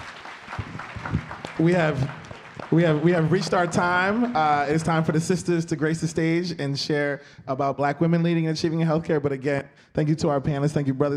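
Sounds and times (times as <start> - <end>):
audience applause for panelists: 0.0 - 5.1
speech: 1.6 - 11.1.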